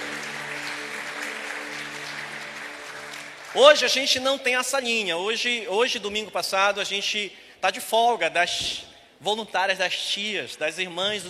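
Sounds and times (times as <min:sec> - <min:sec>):
soft sustained musical tone: 0:00.0 - 0:04.0
audience applauding: 0:00.0 - 0:04.6
speech: 0:03.6 - 0:11.2.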